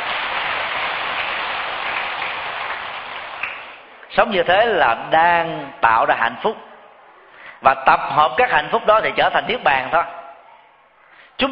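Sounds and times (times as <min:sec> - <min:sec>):
audience applause: 0:00.0 - 0:04.0
speech: 0:04.2 - 0:06.7, 0:07.6 - 0:10.2.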